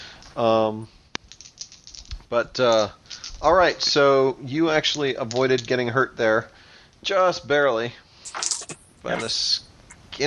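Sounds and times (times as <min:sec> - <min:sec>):
speech: 0:00.4 - 0:01.0, 0:02.3 - 0:10.2
dice rattling in a cup: 0:01.3 - 0:03.4.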